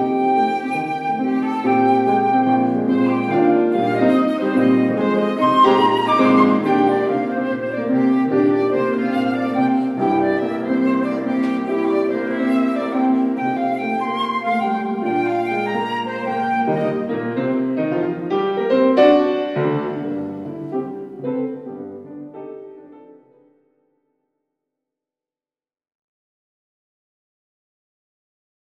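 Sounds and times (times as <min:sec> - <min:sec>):
ragtime music: 0:00.0 - 0:23.0.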